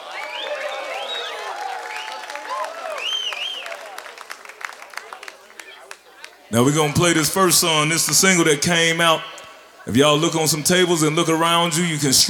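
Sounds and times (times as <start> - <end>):
audience applause: 0.0 - 9.2
speech: 6.5 - 12.2.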